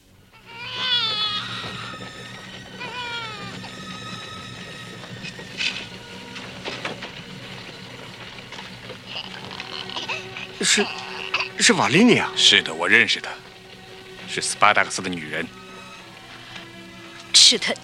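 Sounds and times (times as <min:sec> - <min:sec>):
baby crying: 0:00.3 - 0:04.4, 0:09.0 - 0:12.4
speech: 0:10.6 - 0:11.0, 0:11.7 - 0:13.4, 0:14.4 - 0:15.5, 0:17.5 - 0:17.8.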